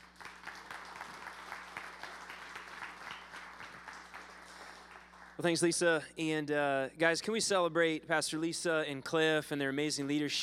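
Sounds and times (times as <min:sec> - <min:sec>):
congregation applause welcoming a pastor at a church worship service: 0:00.0 - 0:05.4
speech: 0:05.4 - 0:10.4.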